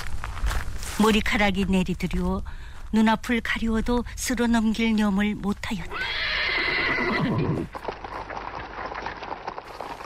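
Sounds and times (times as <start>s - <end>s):
speech: 1.0s - 6.2s, 7.1s - 7.8s
mules pulling a flower-decorated carriage whinnying: 5.9s - 10.0s
clattering hoofbeats: 7.3s - 10.0s.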